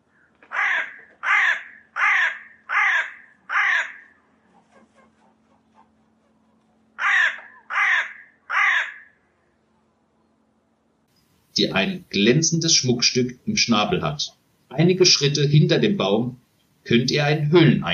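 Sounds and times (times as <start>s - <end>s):
magpie calling: 0.1s - 4.2s, 7.0s - 9.2s
speech: 11.6s - 17.9s.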